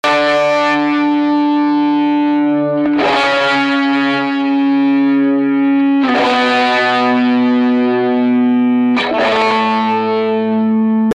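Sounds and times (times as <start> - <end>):
guitar: 0.0 - 11.1.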